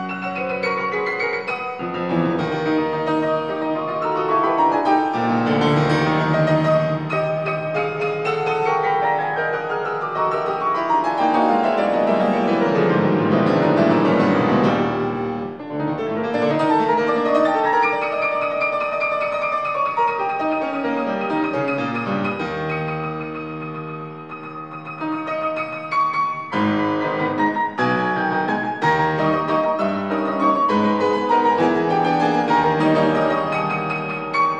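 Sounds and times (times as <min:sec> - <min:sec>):
piano: 0:00.0 - 0:34.5.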